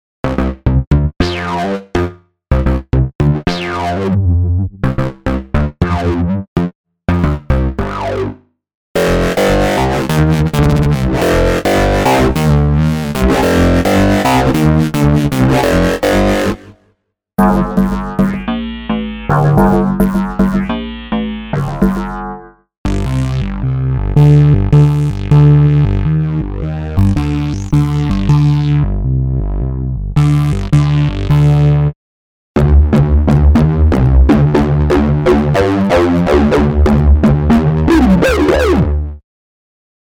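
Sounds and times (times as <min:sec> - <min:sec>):
basses: 0:00.2 - 0:08.4, 0:09.0 - 0:16.8, 0:17.4 - 0:32.0, 0:32.6 - 0:39.2.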